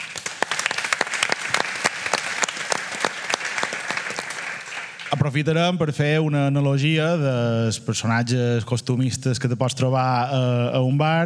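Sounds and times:
crowd applauding: 0.0 - 5.3
speech: 5.2 - 11.2.

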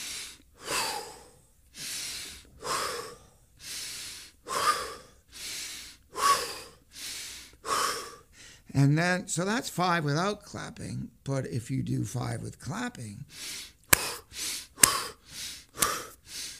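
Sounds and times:
rapid forceful breathing exercise: 0.0 - 8.7, 13.3 - 16.5
speech: 8.8 - 13.6.

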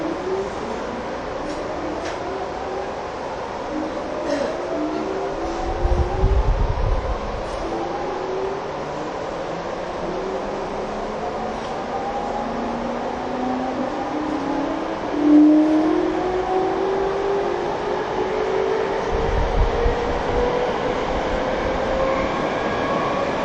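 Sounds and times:
TWR 70-000 series train rumbling on the Saikyo Line: 0.0 - 23.4.

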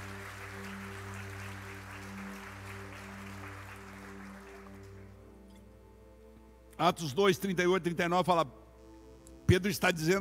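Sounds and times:
applause: 0.0 - 5.1
speech: 6.8 - 8.6, 9.5 - 10.1.

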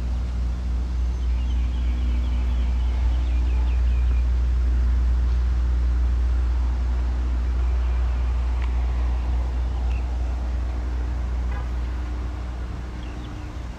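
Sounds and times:
traffic rumble in Modiin, Israel: 0.0 - 13.7
faint thin bird chirps: 0.8 - 4.4, 7.2 - 10.9
soft clicks: 8.6 - 8.8.

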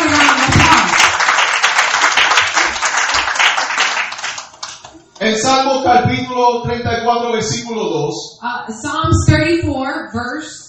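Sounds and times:
audience applauding: 0.0 - 5.0
speech: 5.3 - 10.6.

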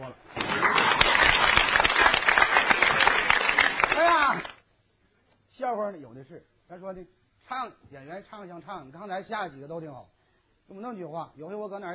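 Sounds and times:
audience applause: 0.3 - 4.6
speech: 5.7 - 11.9.

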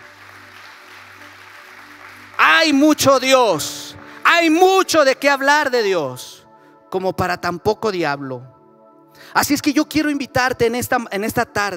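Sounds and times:
audience applause: 0.0 - 4.6
speech: 2.6 - 6.3, 6.9 - 8.6, 9.2 - 11.7.

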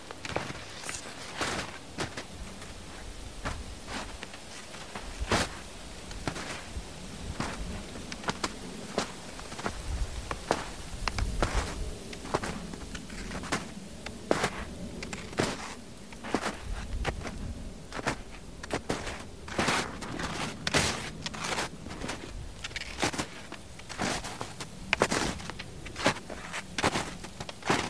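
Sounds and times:
footsteps crunching through ice and snow: 0.0 - 27.8.

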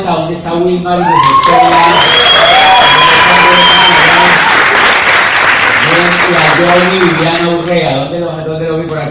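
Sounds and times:
speech: 0.0 - 2.2, 6.0 - 9.0
audience applause: 1.2 - 7.7.

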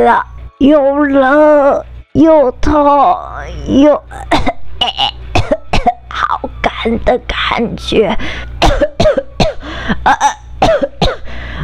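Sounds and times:
speech: 0.0 - 5.6, 6.2 - 9.2, 9.9 - 10.8
coughing: 4.1 - 6.8, 8.6 - 11.4.

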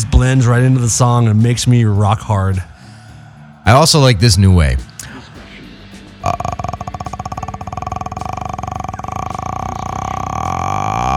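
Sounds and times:
speech: 0.2 - 2.7, 3.7 - 4.9
deep guttural burp: 6.2 - 11.1.

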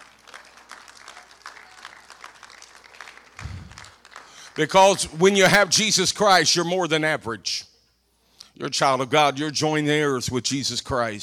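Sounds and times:
audience applause: 0.0 - 5.1
speech: 4.6 - 7.7, 8.6 - 11.2.

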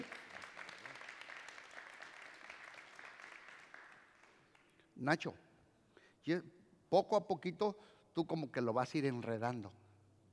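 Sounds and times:
crowd applause: 0.0 - 4.4
speech: 5.0 - 5.4, 6.2 - 9.8.

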